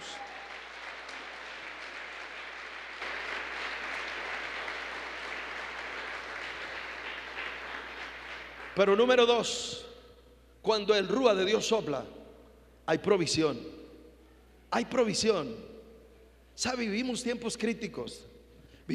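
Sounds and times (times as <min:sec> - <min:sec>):
audience applause: 0:00.0 - 0:08.9
speech: 0:08.8 - 0:09.9, 0:10.6 - 0:12.2, 0:12.9 - 0:13.8, 0:14.7 - 0:15.7, 0:16.6 - 0:18.3.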